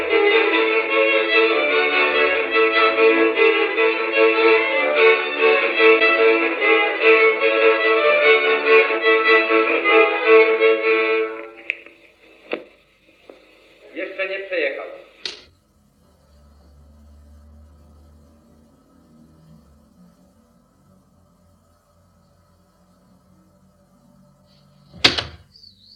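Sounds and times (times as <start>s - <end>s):
instrumental jingle: 0.0s - 11.6s.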